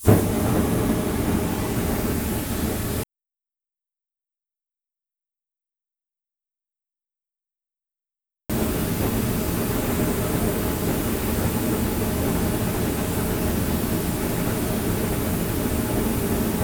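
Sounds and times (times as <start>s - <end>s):
fire: 0.0s - 3.0s, 8.5s - 16.6s.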